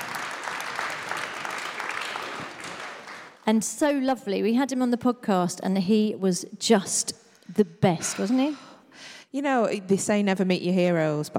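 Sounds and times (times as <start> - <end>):
audience applause: 0.0 - 3.4
speech: 3.5 - 11.3.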